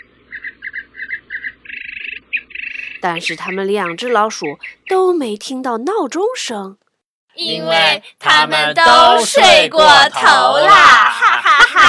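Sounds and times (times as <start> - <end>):
birds chirping: 0.0 - 5.4
speech: 3.0 - 6.8, 7.4 - 11.8
laughter: 10.6 - 11.8.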